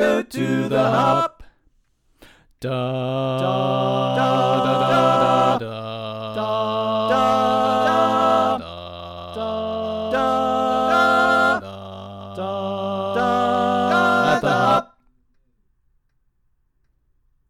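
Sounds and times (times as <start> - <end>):
tenor singing: 0.0 - 1.5, 2.6 - 15.1.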